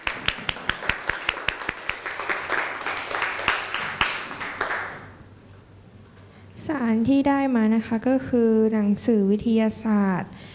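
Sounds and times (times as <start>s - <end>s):
classroom applause: 0.0s - 5.2s
speech: 6.7s - 10.4s.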